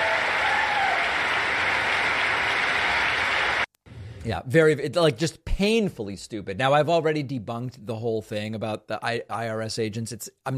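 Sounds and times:
applause in a chamber: 0.0s - 3.7s
speech: 4.2s - 10.5s.

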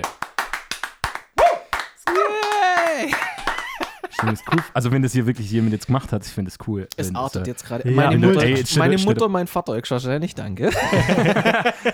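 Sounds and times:
hand claps: 0.0s - 4.8s
voice whooping or cheering: 1.4s - 3.6s
laughter: 2.1s - 4.8s, 10.6s - 11.9s
speech: 4.2s - 11.9s.

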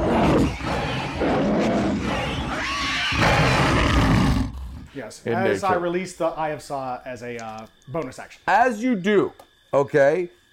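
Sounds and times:
inhuman creature scream: 0.0s - 4.9s
speech: 5.1s - 10.5s.

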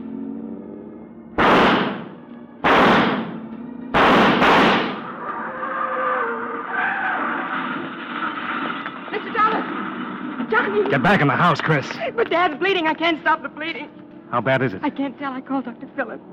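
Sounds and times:
engine-like drone: 0.0s - 16.3s
shotgun blasts: 1.4s - 5.2s
speech: 10.8s - 16.3s.

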